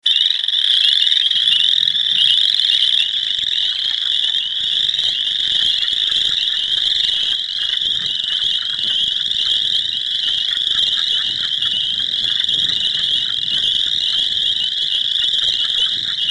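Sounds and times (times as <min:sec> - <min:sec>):
frog chorus of high, rapidly pulsed trilling notes: 0:00.0 - 0:16.3.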